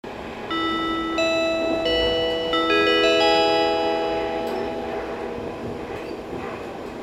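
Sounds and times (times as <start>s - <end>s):
chime: 0.5s - 5.0s.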